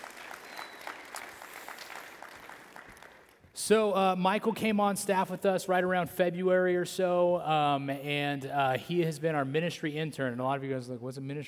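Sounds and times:
audience applause: 0.0s - 3.4s
speech: 3.6s - 11.4s.

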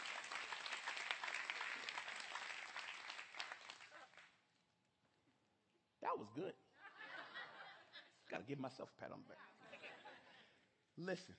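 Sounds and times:
crowd applauding: 0.0s - 4.4s
speech: 6.1s - 6.6s, 8.3s - 9.5s, 11.0s - 11.3s
laughter: 6.8s - 8.3s, 9.3s - 10.6s.

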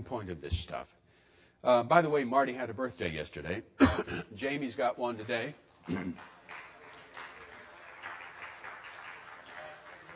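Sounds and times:
speech: 0.1s - 1.0s, 1.6s - 6.6s
golf clap: 6.2s - 10.1s.

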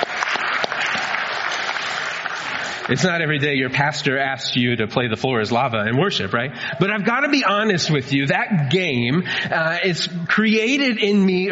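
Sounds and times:
church congregation clapping during worship: 0.0s - 3.6s
speech: 2.9s - 11.5s.

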